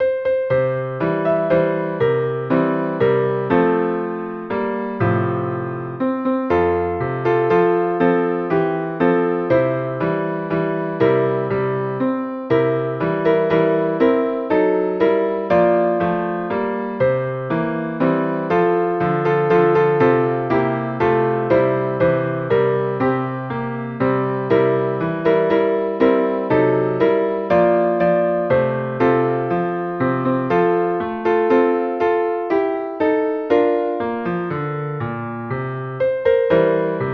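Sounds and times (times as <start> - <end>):
piano: 0.0 - 37.1.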